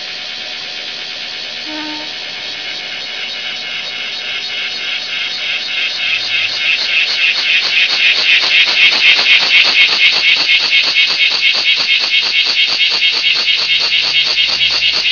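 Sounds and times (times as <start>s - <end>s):
bear cicada steady hissing buzz song: 0.0s - 15.1s.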